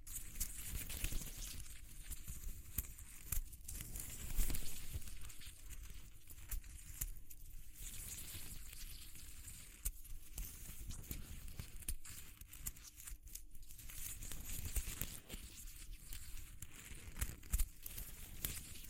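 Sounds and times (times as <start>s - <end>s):
material being crumpled and rubbed: 0.0s - 18.8s.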